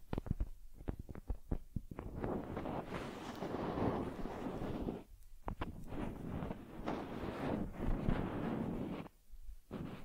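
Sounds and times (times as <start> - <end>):
sharp taps and clicks: 0.0 - 2.1
scratchy rubbing and brushing of a teddy bear: 1.9 - 10.0.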